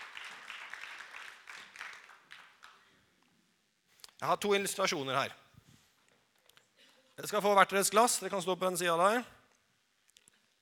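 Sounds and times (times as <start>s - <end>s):
audience applause: 0.0s - 2.9s
speech: 4.2s - 5.4s, 7.2s - 9.4s.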